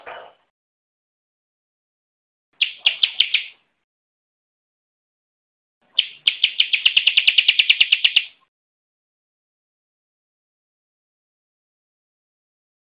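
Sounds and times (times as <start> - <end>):
bar-winged prinia song of sharp high notes: 2.6 - 3.6, 5.9 - 8.4.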